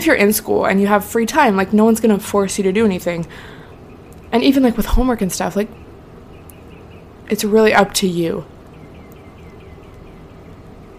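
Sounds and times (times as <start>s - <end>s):
speech: 0.0s - 3.6s, 4.3s - 5.8s, 7.3s - 8.5s
weird bird-like sound outside: 3.4s - 10.9s.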